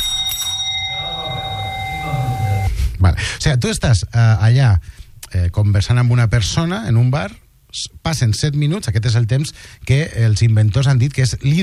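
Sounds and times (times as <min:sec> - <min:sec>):
bell ending a speed-dating conversation in a bar: 0:00.0 - 0:02.8
speech: 0:03.1 - 0:11.6.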